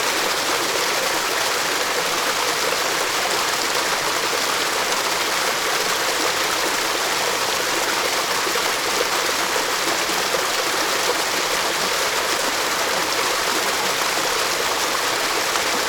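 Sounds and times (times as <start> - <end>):
waterfall into a shallow pool in a forest: 0.0 - 15.8.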